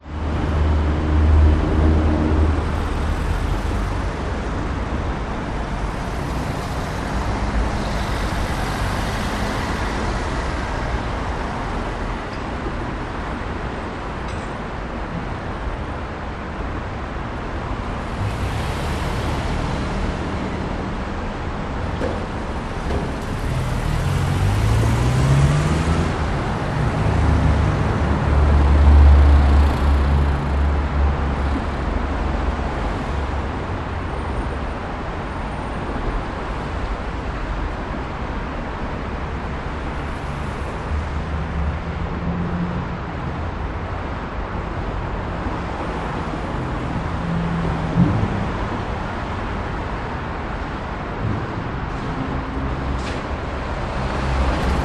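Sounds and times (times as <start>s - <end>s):
Brisbane CBD traffic at midday: 0.0s - 54.8s.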